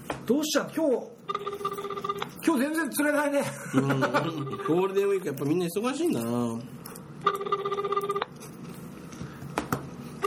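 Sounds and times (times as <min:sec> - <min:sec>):
speech: 0:00.1 - 0:01.7, 0:02.4 - 0:08.0
telephone ringing tone: 0:01.2 - 0:02.5, 0:04.4 - 0:04.9, 0:07.2 - 0:08.3
laughter: 0:03.4 - 0:04.9.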